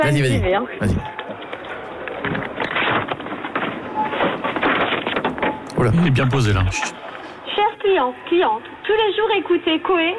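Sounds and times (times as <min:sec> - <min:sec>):
speech: 0:00.0 - 0:01.2, 0:05.8 - 0:07.0, 0:07.9 - 0:10.1
supermarket ambience: 0:00.0 - 0:01.9, 0:02.7 - 0:07.0.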